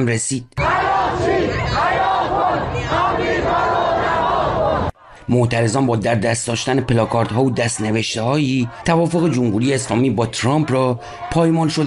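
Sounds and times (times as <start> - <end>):
speech: 0.0 - 4.6, 5.3 - 11.8
crowd of regime supporters chanting slogans outside the foreign ministry office in Mashhad: 0.6 - 11.8.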